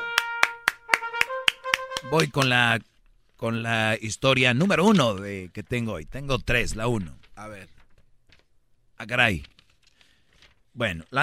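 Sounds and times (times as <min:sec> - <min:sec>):
steady hand claps: 0:00.0 - 0:02.7
speech: 0:02.0 - 0:07.8, 0:09.0 - 0:09.5, 0:10.8 - 0:11.2.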